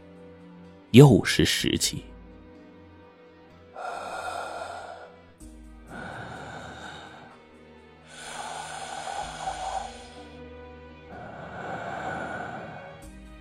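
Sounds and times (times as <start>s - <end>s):
speech: 0.9s - 2.1s
heavy eerie breathing: 3.7s - 10.4s, 11.0s - 13.2s.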